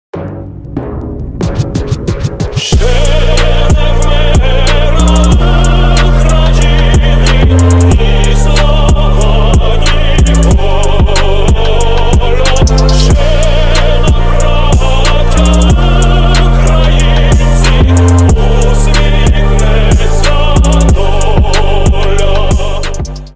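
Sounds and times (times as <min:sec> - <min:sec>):
trap music remix: 0:00.2 - 0:23.3.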